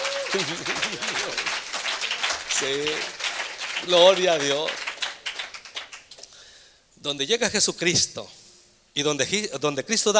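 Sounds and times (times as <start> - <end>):
audience applause: 0.0 - 6.0
speech: 0.3 - 1.5, 2.6 - 3.2, 3.8 - 4.8, 7.0 - 8.4, 9.0 - 10.1.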